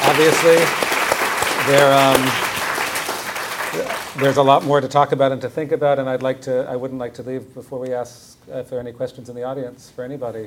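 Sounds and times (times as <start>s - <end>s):
audience applause for panelists after a discussion: 0.0s - 4.8s
speech: 0.2s - 0.9s, 1.6s - 2.5s, 3.7s - 10.4s.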